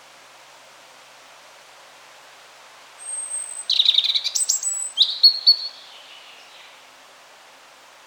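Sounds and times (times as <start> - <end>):
European robin Erithacus rubecula singing: 3.0 - 6.8.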